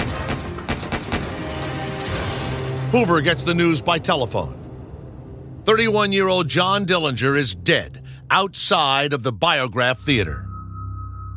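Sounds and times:
gunshots in the crowd: 0.0 - 1.6
speech: 2.9 - 4.6, 5.7 - 10.5.

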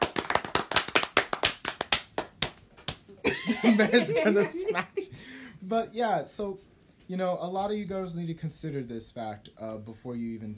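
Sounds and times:
hands clapping: 0.0 - 3.2
speech: 3.2 - 10.5
laughter: 3.3 - 5.1.

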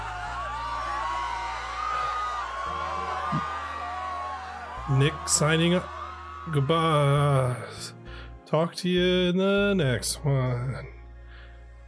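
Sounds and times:
people screaming: 0.0 - 7.8
speech: 4.9 - 11.0.

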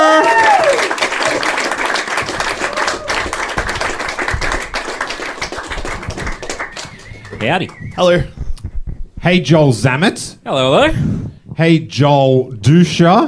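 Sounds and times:
crowd round of applause: 0.0 - 7.9
brief whistle-like tone: 6.6 - 8.4
speech: 7.4 - 8.4, 9.2 - 13.2.

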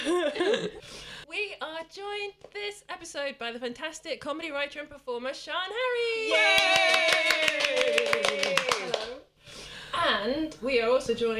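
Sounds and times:
speech: 0.4 - 1.1, 1.8 - 9.3, 9.9 - 11.3
round of applause, hands clapping: 6.3 - 9.2.

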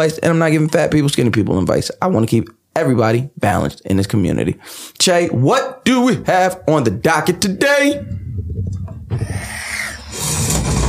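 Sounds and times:
speech: 0.0 - 10.8
chair creaking: 8.0 - 10.8.

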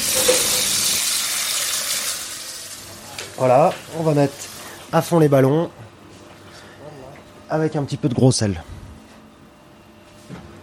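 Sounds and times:
filling a saucepan with water: 0.0 - 4.8
speech: 3.4 - 5.8, 7.5 - 8.8.

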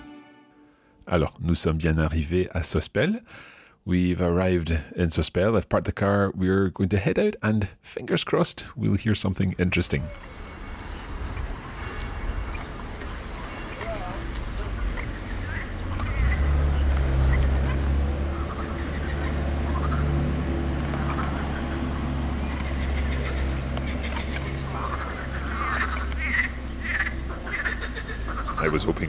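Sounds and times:
speech: 1.1 - 10.4
morning chorus of frogs chirping on the river Bévéra: 10.0 - 29.0.

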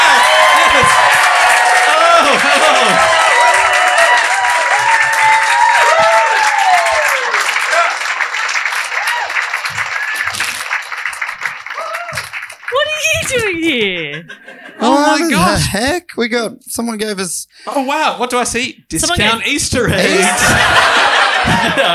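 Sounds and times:
audience applause and cheering: 0.0 - 13.6, 20.0 - 21.9
laughter: 1.9 - 3.2, 12.7 - 15.4, 19.1 - 21.9
speech: 14.2 - 21.9.

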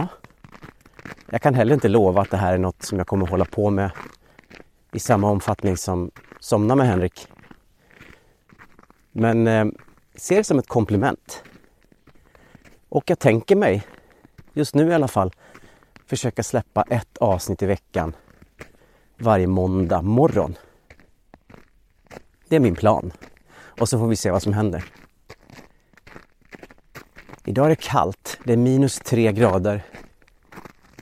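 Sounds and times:
footsteps crunching through snow in forest: 0.0 - 31.0
speech: 1.3 - 4.2, 4.9 - 7.3, 9.2 - 11.5, 12.9 - 14.0, 14.6 - 18.2, 19.2 - 20.7, 22.5 - 25.6, 27.5 - 30.0.

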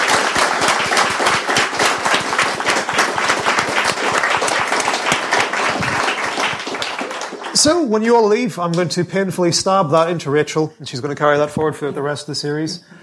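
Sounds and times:
audience applause: 0.0 - 7.9
speech: 7.6 - 13.0.

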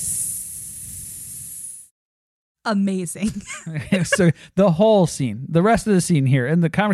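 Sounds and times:
air hissing out of a flat tire: 0.0 - 1.9
speech: 2.6 - 6.9
laughter: 3.2 - 4.8.

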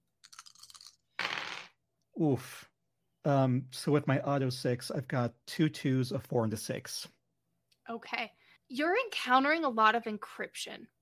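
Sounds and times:
three dice being rolled: 1.2 - 1.8
speech: 2.2 - 7.2, 7.9 - 11.0.

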